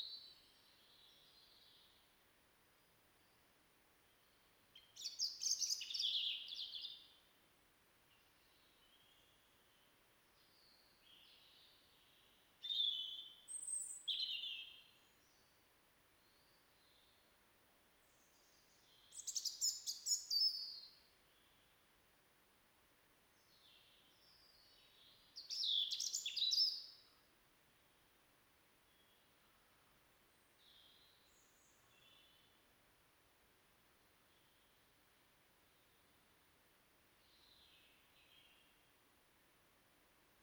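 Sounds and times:
European robin song: 0.0 - 2.2, 2.9 - 7.3, 8.1 - 17.4, 18.0 - 21.8, 23.3 - 27.3, 28.8 - 32.7, 34.2 - 35.0, 37.1 - 39.0.

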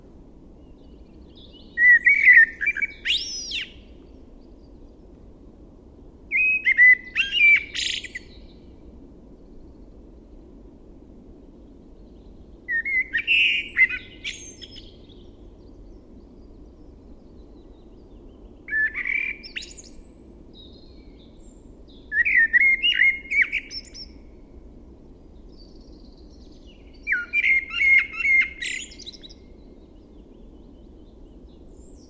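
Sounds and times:
Eurasian blackbird singing: 0.8 - 4.0, 6.3 - 8.6, 12.7 - 18.0, 18.7 - 24.2, 25.5 - 30.0.

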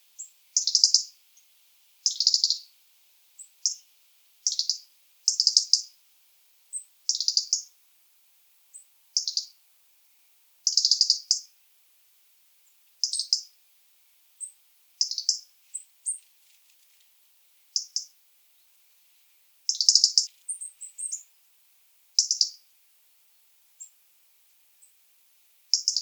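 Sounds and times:
European robin ticking and singing: 0.2 - 2.7, 3.4 - 6.0, 6.7 - 7.8, 8.7 - 9.6, 10.6 - 11.6, 12.6 - 13.6, 14.4 - 16.3, 17.7 - 18.7, 19.7 - 21.4, 22.2 - 22.7, 23.8 - 24.0, 25.7 - 25.9.

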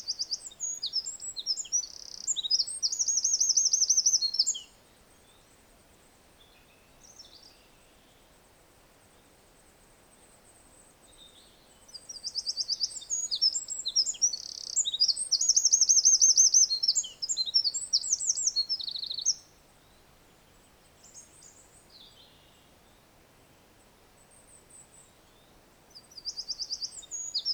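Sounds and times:
Eurasian wren singing with fast trill: 0.0 - 4.7, 12.2 - 19.4, 26.1 - 27.5.

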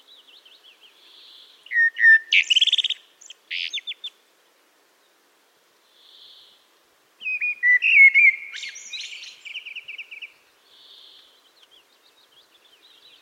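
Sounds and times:
Eurasian blackbird song: 0.0 - 4.2, 7.2 - 13.2
soft hiss: 0.0 - 13.2.

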